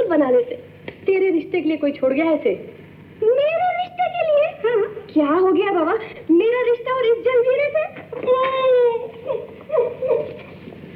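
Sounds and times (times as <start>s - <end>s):
speech: 0.1s - 4.0s, 5.1s - 10.4s
woman crying and sobbing: 8.2s - 10.5s.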